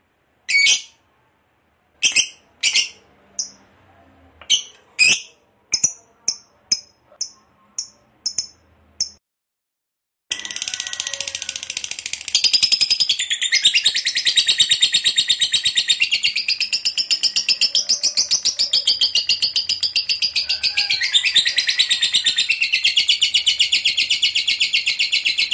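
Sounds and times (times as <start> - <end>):
lovebird chattering: 2.0 - 3.6, 4.4 - 9.2, 11.6 - 25.5.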